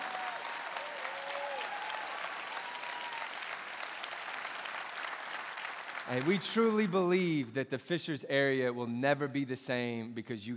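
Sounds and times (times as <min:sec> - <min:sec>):
church congregation applause on campus launch day: 0:00.0 - 0:07.5
speech: 0:06.1 - 0:10.5.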